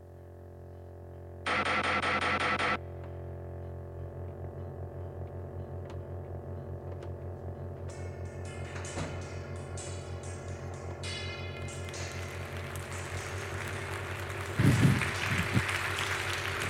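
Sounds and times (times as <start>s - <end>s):
low constant hum: 0.0s - 16.6s
applause: 11.9s - 16.6s.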